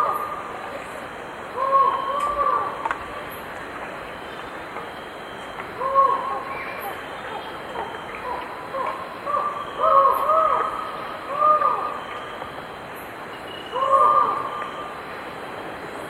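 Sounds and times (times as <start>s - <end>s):
Collared Forest-Falcon calling in South American eastern lowlands: 1.5s - 3.4s, 4.0s - 15.0s.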